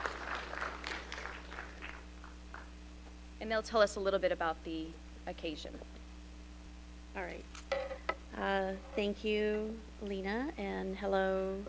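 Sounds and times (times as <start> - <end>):
crowd clapping: 0.0 - 2.7
low electrical hum: 0.0 - 11.6
speech: 3.4 - 6.0, 7.1 - 11.6.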